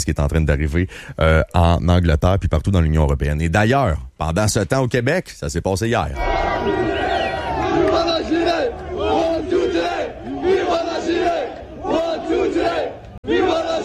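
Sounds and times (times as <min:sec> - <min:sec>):
speech: 0:00.0 - 0:07.0
crowd at a demonstration in Montréal-Nord chanting: 0:06.2 - 0:13.8.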